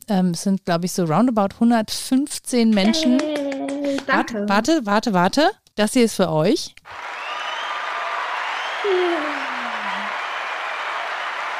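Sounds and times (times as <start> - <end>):
speech: 0.1 - 7.1
applause sound effect: 2.8 - 4.2, 6.9 - 11.5.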